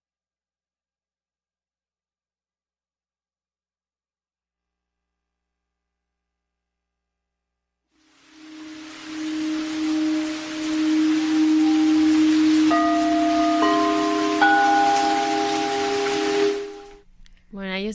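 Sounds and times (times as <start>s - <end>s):
singing bowls ringing: 8.3s - 17.0s.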